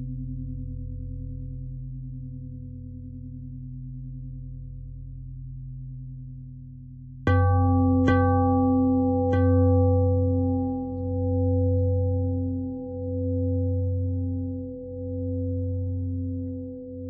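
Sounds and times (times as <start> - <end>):
pentatonic bell melody: 7.3 - 17.0.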